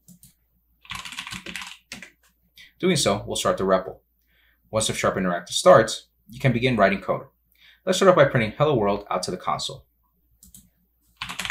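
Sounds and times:
typing the .NET FSI command into a VS Code terminal on Ubuntu: 0.0 - 2.3, 10.4 - 11.4
speech: 2.8 - 4.1, 4.7 - 9.9.

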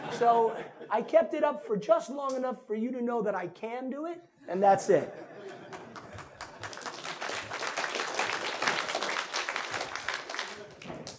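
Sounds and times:
laughter: 0.0 - 1.1, 4.8 - 7.5, 9.9 - 10.9
speech: 0.2 - 5.7
audience applause: 5.6 - 11.1.

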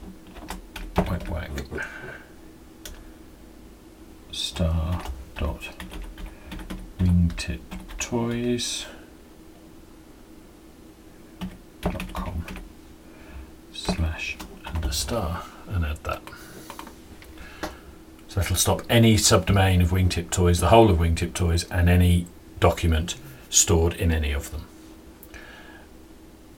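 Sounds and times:
computer keyboard typing a web address: 0.0 - 1.4, 4.8 - 8.0, 11.4 - 12.6
speech: 4.6 - 5.8, 7.4 - 9.0, 15.1 - 16.1, 18.6 - 24.7.

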